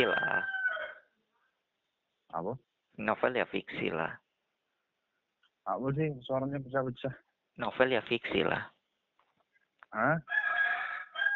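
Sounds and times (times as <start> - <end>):
chicken crowing: 0.0 - 1.1, 10.3 - 11.3
speech: 2.3 - 4.2, 5.6 - 8.8, 9.9 - 10.4.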